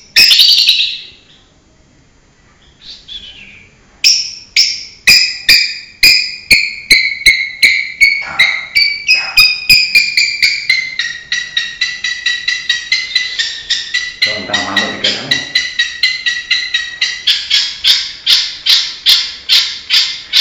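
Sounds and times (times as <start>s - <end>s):
Long-tailed shrike giving harsh chattering notes: 4.6s - 20.3s.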